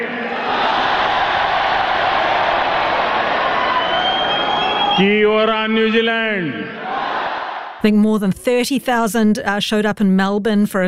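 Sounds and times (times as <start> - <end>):
10,000 Indian New Zealanders cheering at a rally: 0.0 - 7.9
speech: 5.0 - 6.8, 7.8 - 10.8.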